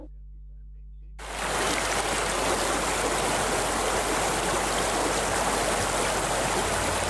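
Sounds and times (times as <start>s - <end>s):
rain falling: 1.2s - 7.0s.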